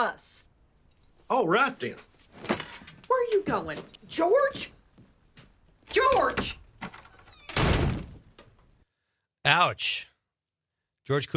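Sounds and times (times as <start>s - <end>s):
speech: 0.0s - 0.4s, 1.3s - 2.1s, 3.3s - 4.8s, 5.9s - 6.6s, 9.4s - 10.1s, 11.1s - 11.3s
door slammed shut in a TV show scene: 5.9s - 8.6s.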